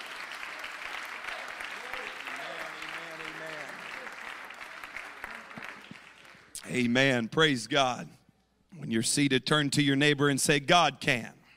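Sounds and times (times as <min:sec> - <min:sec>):
audience clapping hands: 0:00.0 - 0:06.9
speech: 0:06.6 - 0:08.2, 0:08.9 - 0:11.4.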